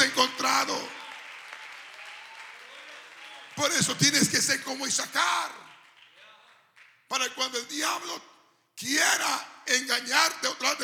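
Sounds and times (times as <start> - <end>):
audience applause: 0.0 - 6.9
speech: 3.6 - 5.7, 7.1 - 10.8.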